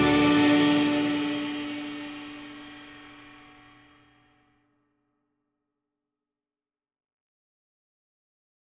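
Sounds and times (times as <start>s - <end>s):
small orchestra playing: 0.0s - 2.4s.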